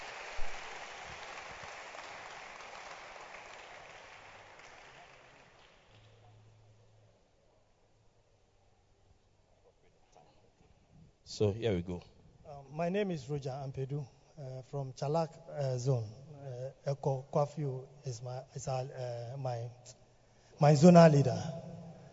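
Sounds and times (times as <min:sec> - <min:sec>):
audience clapping as speaker comes up: 0:00.0 - 0:06.2
speech: 0:11.3 - 0:12.1, 0:12.7 - 0:20.0, 0:20.6 - 0:21.7.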